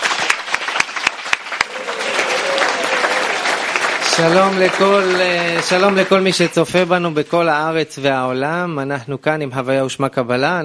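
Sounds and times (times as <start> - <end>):
audience applause: 0.0 - 7.8
speech: 4.2 - 10.6.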